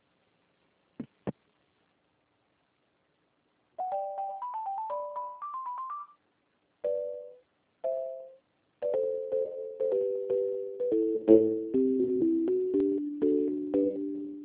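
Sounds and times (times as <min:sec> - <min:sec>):
electronic phone melody on a call to the Rio de Janeiro Public Defender's Office: 0:03.8 - 0:06.2, 0:06.8 - 0:14.4.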